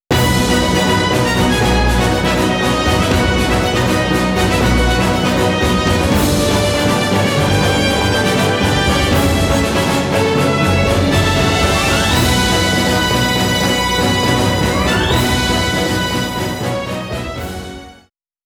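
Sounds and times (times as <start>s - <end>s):
victory jingle: 0.1s - 17.7s.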